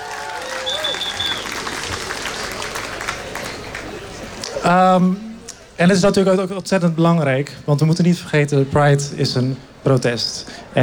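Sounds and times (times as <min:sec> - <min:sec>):
crowd applause: 0:00.0 - 0:04.8
speech: 0:04.7 - 0:10.8.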